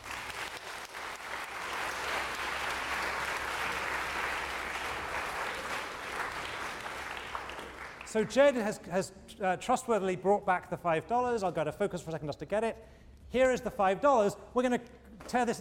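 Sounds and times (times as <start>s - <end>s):
audience applause: 0.0s - 8.2s
speech: 8.1s - 15.5s.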